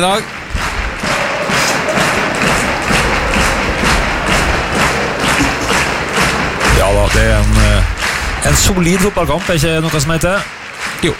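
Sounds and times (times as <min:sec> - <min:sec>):
speech: 0:00.0 - 0:00.4, 0:06.8 - 0:11.1
stadium crowd clapping rhythmically: 0:00.0 - 0:11.1.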